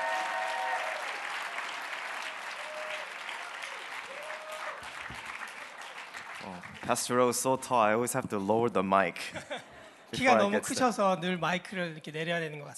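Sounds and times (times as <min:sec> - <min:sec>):
church congregation applause welcoming two pastors: 0:00.0 - 0:07.5
speech: 0:06.5 - 0:12.7.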